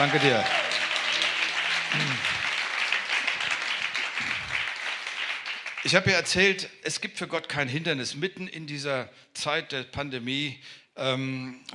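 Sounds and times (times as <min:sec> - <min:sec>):
speech: 0:00.0 - 0:00.6, 0:01.9 - 0:02.4, 0:05.8 - 0:11.7
applause during a church worship service for the keyboard player: 0:00.0 - 0:06.4.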